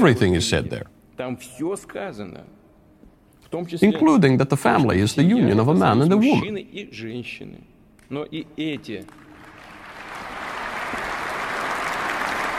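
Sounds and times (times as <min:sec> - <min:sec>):
speech: 0:00.0 - 0:02.6, 0:03.5 - 0:09.2
audience applause: 0:09.1 - 0:12.5.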